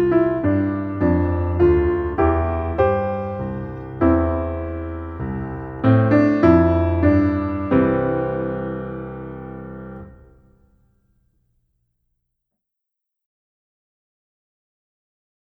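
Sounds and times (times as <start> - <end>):
minuet piano accompaniment: 0.0 - 10.8.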